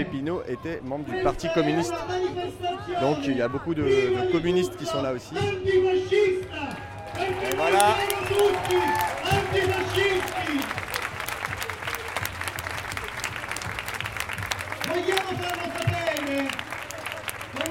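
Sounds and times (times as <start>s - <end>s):
speech: 0.0s - 10.8s, 14.9s - 16.6s
audience applause: 6.7s - 17.7s.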